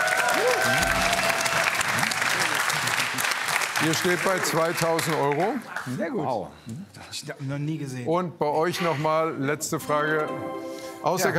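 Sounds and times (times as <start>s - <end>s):
audience applause: 0.0s - 6.0s
speech: 3.8s - 11.3s.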